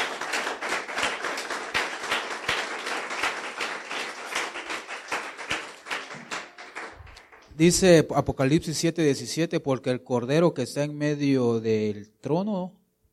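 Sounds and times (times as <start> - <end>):
audience applause: 0.0 - 7.6
speech: 7.6 - 12.8.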